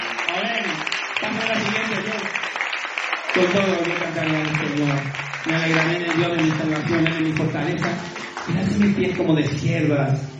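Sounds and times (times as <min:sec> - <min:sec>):
audience applause: 0:00.0 - 0:09.6
speech: 0:03.4 - 0:10.3.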